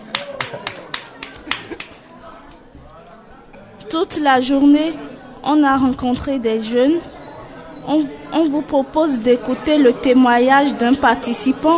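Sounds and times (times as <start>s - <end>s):
audience applause: 0.0s - 2.0s
speech: 3.9s - 7.2s, 7.9s - 11.7s.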